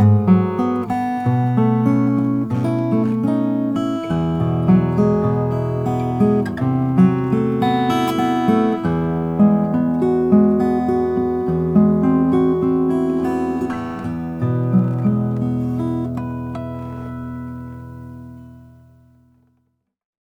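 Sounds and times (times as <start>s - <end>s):
Taylor 612 acoustic guitar: 0.0s - 19.6s.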